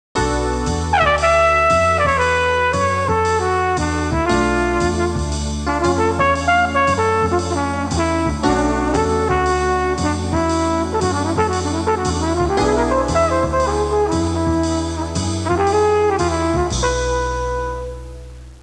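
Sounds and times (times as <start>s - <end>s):
jazz music ringtone: 0.2s - 18.2s.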